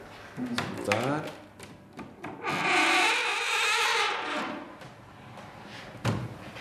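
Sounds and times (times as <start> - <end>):
speech: 0.4 - 1.4
old cabinet door hinges creaking open: 2.3 - 4.8.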